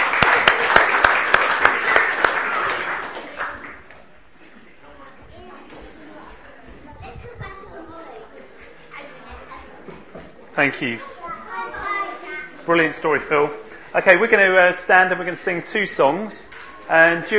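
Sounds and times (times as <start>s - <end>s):
round of applause: 0.0s - 3.9s
speech: 10.6s - 11.1s, 12.7s - 17.3s.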